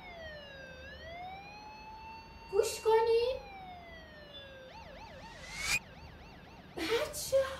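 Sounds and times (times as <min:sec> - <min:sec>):
police car siren wailing: 0:00.0 - 0:07.5
speech: 0:02.5 - 0:03.2.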